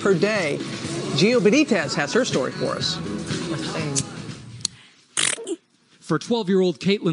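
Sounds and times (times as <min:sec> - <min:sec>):
speech: 0:00.0 - 0:04.1, 0:06.1 - 0:07.1
person sneezing repeatedly: 0:05.2 - 0:05.7.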